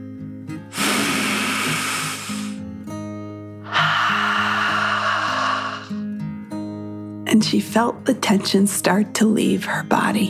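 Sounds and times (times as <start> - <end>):
soft steady music: 0.0 - 10.2
deep breath in and out: 0.7 - 2.6, 3.6 - 6.1
speech: 7.4 - 10.2.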